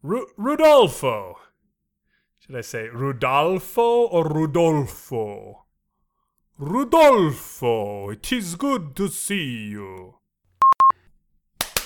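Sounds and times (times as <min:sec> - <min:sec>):
speech: 0:00.0 - 0:01.4, 0:02.5 - 0:05.6, 0:06.6 - 0:10.2
short electronic beeps: 0:10.6 - 0:10.9
hand claps: 0:11.6 - 0:11.8.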